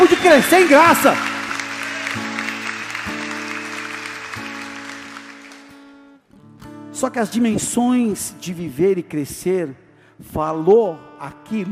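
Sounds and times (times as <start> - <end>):
audience applauding: 0.0 - 6.0
speech: 0.2 - 1.3, 7.0 - 11.6.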